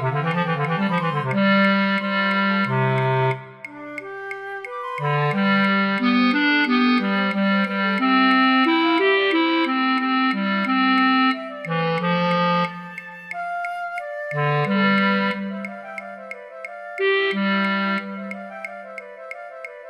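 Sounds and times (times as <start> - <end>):
bass flute in a flute choir: 0.0 - 19.8.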